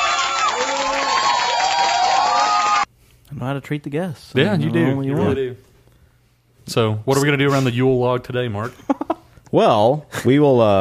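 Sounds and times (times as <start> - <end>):
audience cheering with whoops and shouts: 0.0 - 2.9
speech: 3.4 - 5.7, 6.7 - 10.7.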